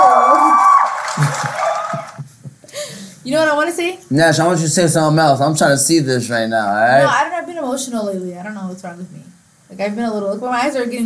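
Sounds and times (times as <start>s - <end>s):
audience applause and cheering: 0.0s - 2.4s
speech: 3.3s - 11.0s.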